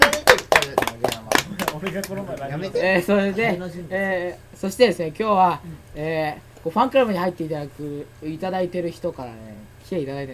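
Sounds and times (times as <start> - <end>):
a few people clapping: 0.0 - 2.6
people talking and laughing: 1.0 - 4.0
speech: 1.8 - 10.3.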